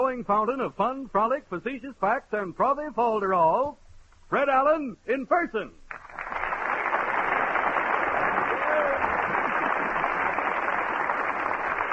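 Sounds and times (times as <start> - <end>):
speech: 0.1 - 5.8
studio audience applause: 5.9 - 11.9.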